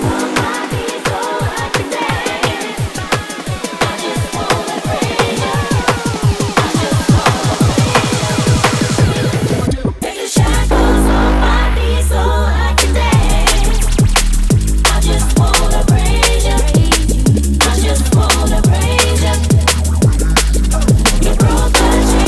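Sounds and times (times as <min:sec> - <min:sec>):
drum and bass music: 0:00.0 - 0:22.2.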